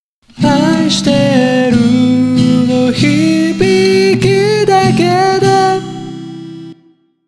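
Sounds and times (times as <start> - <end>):
person singing: 0.3 - 7.0.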